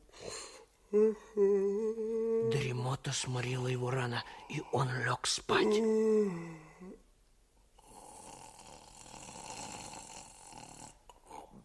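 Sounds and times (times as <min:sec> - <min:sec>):
speech: 0:00.9 - 0:07.0
loud raspy snoring: 0:07.8 - 0:11.6.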